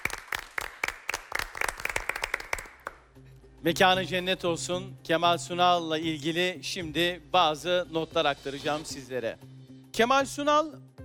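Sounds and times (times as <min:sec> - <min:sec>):
quiz show studio audience applause: 0:00.0 - 0:03.0
speech: 0:03.6 - 0:11.0.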